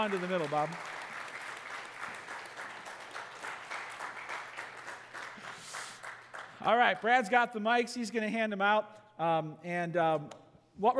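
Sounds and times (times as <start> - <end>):
speech: 0.0 - 1.0, 6.6 - 10.9
crowd applauding: 0.0 - 7.2.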